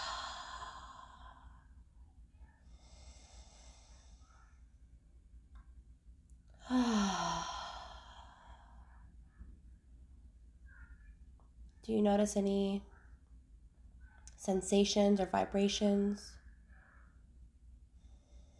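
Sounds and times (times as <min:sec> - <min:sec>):
partly voiced sigh: 0:00.0 - 0:01.6, 0:06.6 - 0:08.9
deep breathing in through the nose and out through the mouth during guided meditation: 0:00.0 - 0:01.9, 0:02.5 - 0:04.8, 0:06.5 - 0:09.2, 0:17.9 - 0:18.5
speech: 0:11.9 - 0:12.9, 0:14.4 - 0:16.4.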